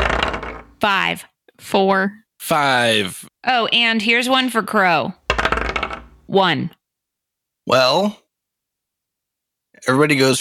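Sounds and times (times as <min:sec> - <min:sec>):
dice rolling on a table: 0:00.0 - 0:00.8, 0:05.2 - 0:06.3
speech: 0:00.8 - 0:05.2, 0:06.3 - 0:06.8, 0:07.7 - 0:08.2, 0:09.8 - 0:10.3.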